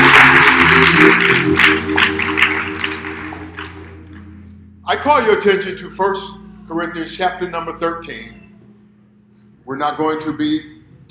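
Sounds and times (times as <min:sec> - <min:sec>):
audience applause: 0:00.0 - 0:04.3
speech: 0:04.9 - 0:08.4, 0:09.7 - 0:11.0.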